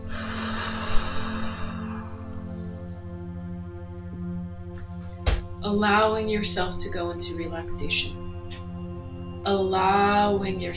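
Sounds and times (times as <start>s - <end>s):
deep breath in through the nose and out through the mouth: 0.0s - 2.6s
soft steady musical drone: 0.0s - 10.7s
speech: 5.6s - 8.2s, 9.4s - 10.7s.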